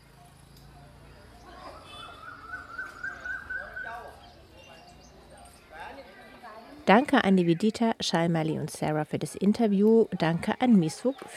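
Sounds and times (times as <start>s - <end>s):
birds singing: 0.0s - 7.5s
speech: 6.9s - 11.3s.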